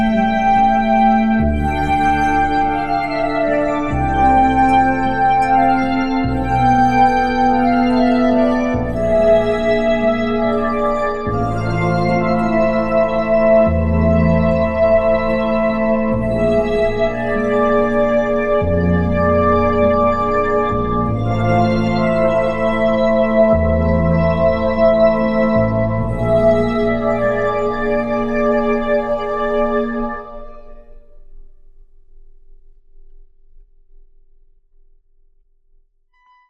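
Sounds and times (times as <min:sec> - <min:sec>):
strings playing: 0:00.0 - 0:30.7.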